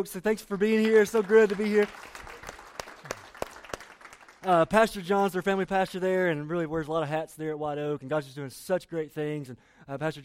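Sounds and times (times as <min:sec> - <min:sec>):
speech: 0:00.0 - 0:02.3, 0:04.4 - 0:10.2
audience applause welcoming a visiting church group from White Oak: 0:00.6 - 0:04.8.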